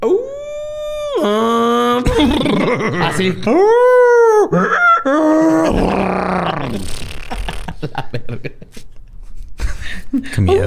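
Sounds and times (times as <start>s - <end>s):
man imitating a beast's bark-bray-neigh cry: 0.0s - 7.2s
laughter: 2.0s - 3.4s, 4.5s - 10.6s
speech: 2.3s - 3.8s, 4.5s - 7.1s, 7.8s - 9.0s, 10.1s - 10.6s.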